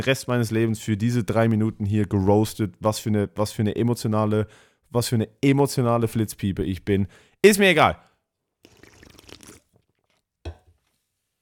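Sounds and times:
speech: 0.0s - 8.1s
slurping sip of Red Bull energy drink with a wet swallow: 8.6s - 11.0s.

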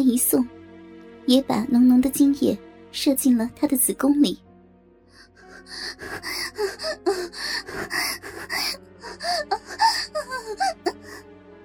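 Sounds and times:
speech: 0.0s - 0.6s, 1.3s - 4.4s
heavy panting: 5.2s - 11.2s.

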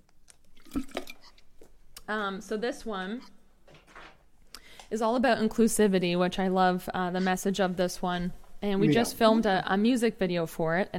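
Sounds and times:
sipping a drink: 0.3s - 1.5s
speech: 2.1s - 3.4s, 4.9s - 10.9s.

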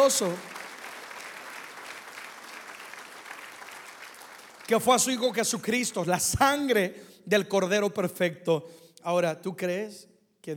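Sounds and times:
speech: 0.0s - 0.6s, 4.7s - 10.5s
audience applause: 0.0s - 5.2s.

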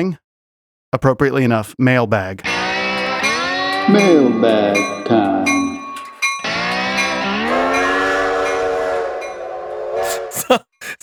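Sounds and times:
speech: 0.0s - 0.2s, 0.9s - 2.5s, 3.9s - 5.5s, 10.5s - 11.0s
low steam train rail rumble: 2.4s - 10.4s
steam train horn blast: 2.4s - 10.4s.

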